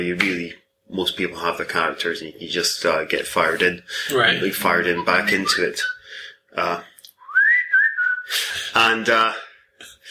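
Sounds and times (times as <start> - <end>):
speech: 0.0 - 6.9, 8.3 - 9.4
phone whistle alert tone: 4.1 - 6.0.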